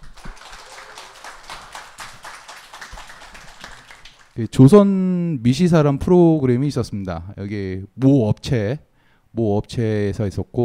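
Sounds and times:
audience applauding: 0.0 - 4.4
speech: 4.4 - 10.6.

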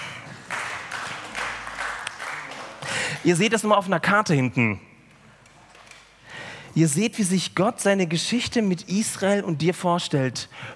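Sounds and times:
audience applause: 0.0 - 3.4
speech: 3.2 - 4.9, 6.8 - 10.7.

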